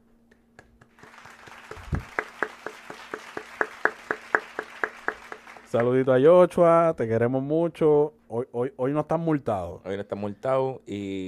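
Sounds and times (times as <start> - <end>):
applause: 0.8 - 6.0
speech: 5.7 - 11.2.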